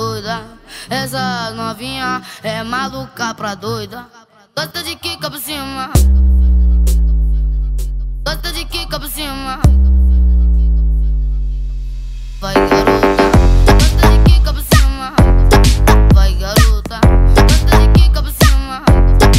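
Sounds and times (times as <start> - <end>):
funk bass: 6.0 - 19.3.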